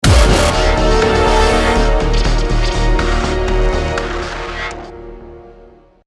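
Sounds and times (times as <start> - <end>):
music: 0.0 - 6.0.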